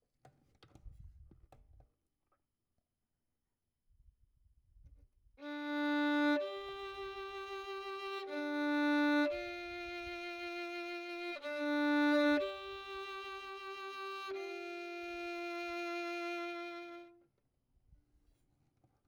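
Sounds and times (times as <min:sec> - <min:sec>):
violin: 0:05.4 - 0:17.2.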